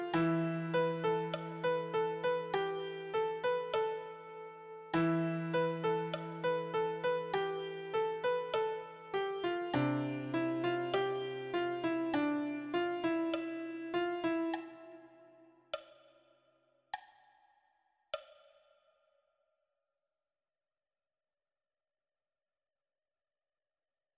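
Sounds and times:
beginner piano solo: 0.0 - 15.3.

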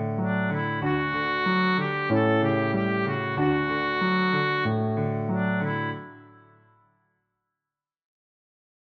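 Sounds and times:
piano accompaniment: 0.0 - 6.9.

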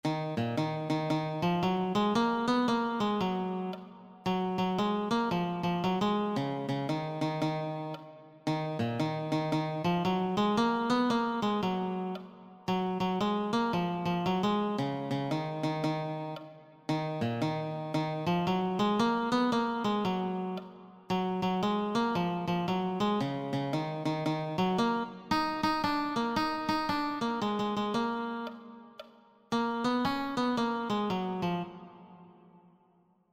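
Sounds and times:
guitar: 0.0 - 32.3.

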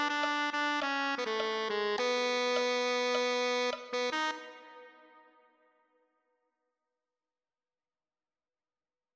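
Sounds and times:
tenor saxophone: 0.0 - 5.6.

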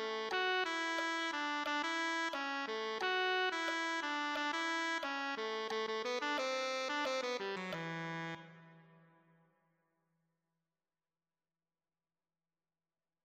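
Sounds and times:
tenor saxophone: 0.0 - 9.2.

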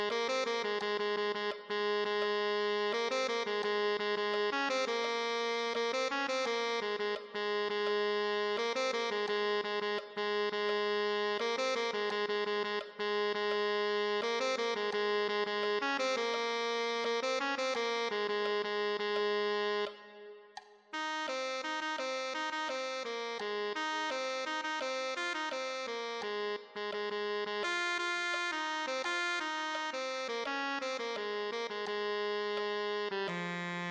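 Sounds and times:
tenor saxophone: 0.0 - 33.8.

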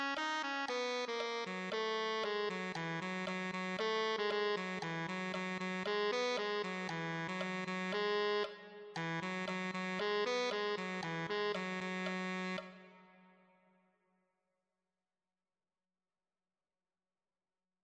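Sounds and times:
tenor saxophone: 0.0 - 13.4.

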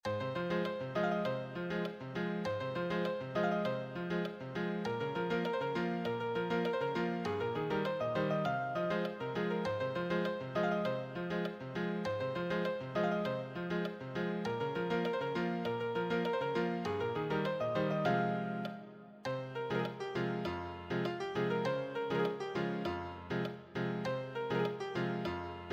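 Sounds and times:
advanced solo piano: 0.0 - 25.7.

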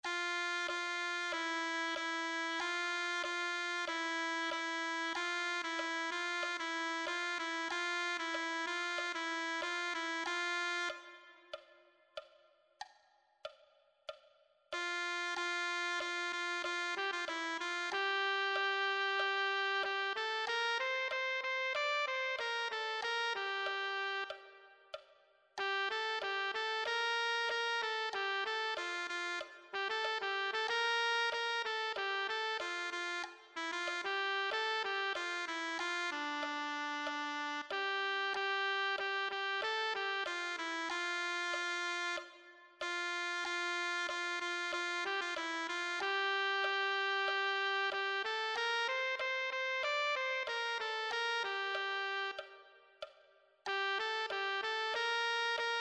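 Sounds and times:
tenor saxophone: 0.0 - 11.7, 14.7 - 55.8.

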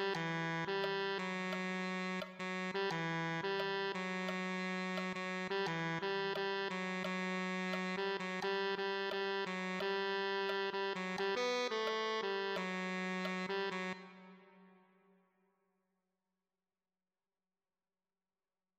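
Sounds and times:
tenor saxophone: 0.0 - 14.9.

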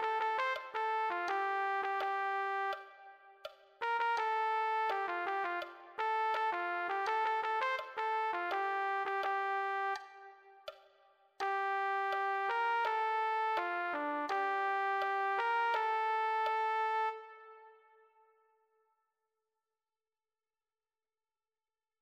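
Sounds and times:
trumpet: 0.0 - 10.5, 11.4 - 18.3.

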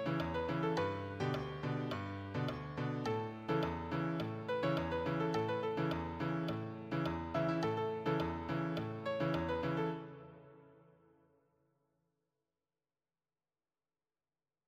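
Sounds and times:
solo piano: 0.0 - 11.1.

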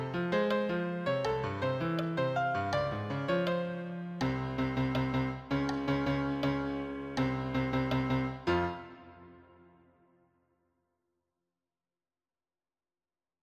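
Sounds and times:
solo piano: 0.0 - 9.9.

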